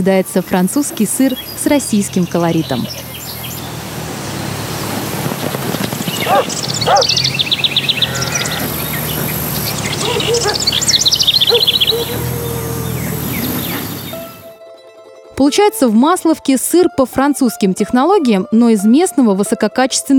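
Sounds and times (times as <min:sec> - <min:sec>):
speech: 0:00.0 - 0:03.1, 0:06.3 - 0:07.3, 0:11.5 - 0:12.6, 0:15.4 - 0:20.1
grasshoppers chirping in a meadow by river: 0:00.4 - 0:14.5.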